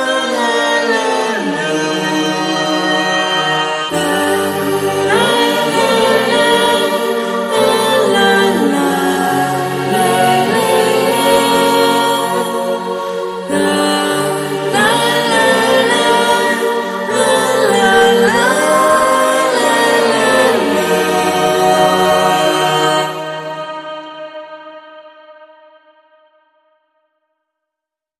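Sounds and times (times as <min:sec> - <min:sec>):
person singing: 0:00.0 - 0:25.5.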